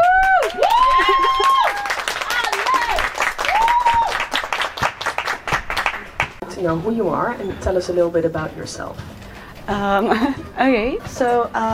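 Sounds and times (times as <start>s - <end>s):
audience applause: 0.0s - 6.4s
speech: 6.7s - 11.7s.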